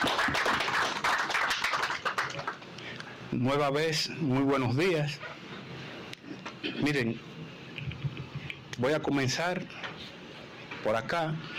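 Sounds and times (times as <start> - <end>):
hands clapping in applause: 0.0 - 3.1
speech: 3.4 - 5.3, 6.6 - 7.3, 8.8 - 9.8, 10.8 - 11.5.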